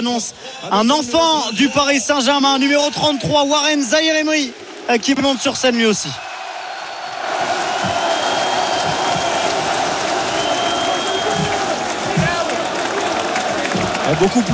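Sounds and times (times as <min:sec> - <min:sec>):
speech: 0:00.0 - 0:06.3, 0:14.1 - 0:14.5
scattered shouts: 0:01.4 - 0:14.5
large crowd clapping and cheering: 0:01.6 - 0:14.5
scattered whistles: 0:06.6 - 0:12.4.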